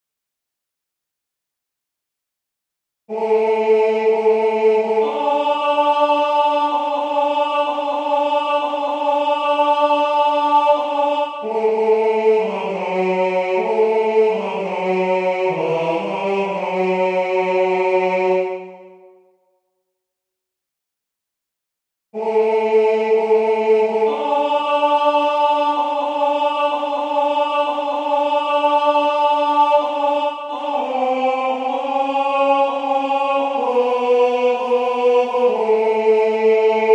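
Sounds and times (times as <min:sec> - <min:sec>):
tenor singing a Christmas carol: 0:03.1 - 0:18.9, 0:22.2 - 0:36.9.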